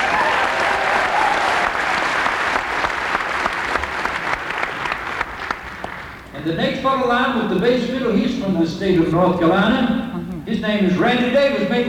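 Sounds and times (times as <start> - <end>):
audience applauding a musician introduced on stage: 0.0 - 6.2
speech: 6.9 - 11.8.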